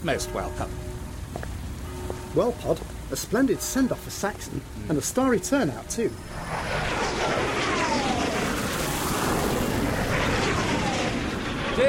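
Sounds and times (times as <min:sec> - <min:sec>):
speech: 0:00.0 - 0:01.6, 0:02.3 - 0:07.0
aerobatic jet aircraft flyover: 0:05.4 - 0:11.8.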